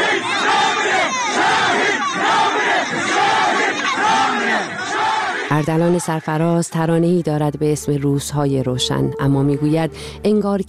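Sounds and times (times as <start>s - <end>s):
large crowd chanting a slogan in unison: 0.0s - 6.5s
speech: 5.5s - 10.6s.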